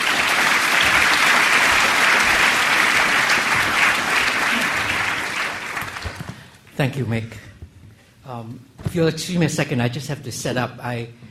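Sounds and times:
audience applause: 0:00.0 - 0:06.6
speech: 0:06.8 - 0:07.5, 0:08.3 - 0:11.2.

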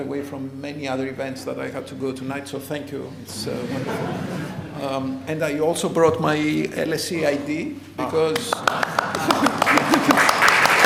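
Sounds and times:
speech: 0:00.0 - 0:09.5
laughter: 0:03.3 - 0:05.0, 0:08.2 - 0:10.8
audience applause: 0:08.4 - 0:10.8.

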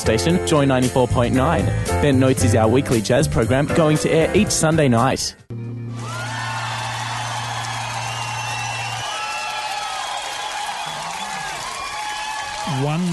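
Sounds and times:
speech: 0:00.0 - 0:05.6, 0:12.8 - 0:13.1
studio audience applause: 0:05.9 - 0:13.1.

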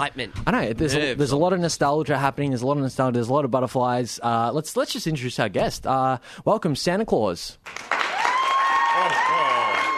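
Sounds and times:
speech: 0:00.0 - 0:07.9
studio audience applause: 0:07.6 - 0:09.9.

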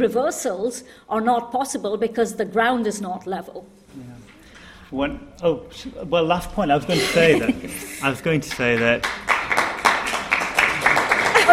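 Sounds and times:
speech: 0:00.0 - 0:04.2, 0:04.9 - 0:09.3
laughter: 0:06.8 - 0:08.8, 0:10.7 - 0:11.5
audience applause: 0:08.2 - 0:11.5.

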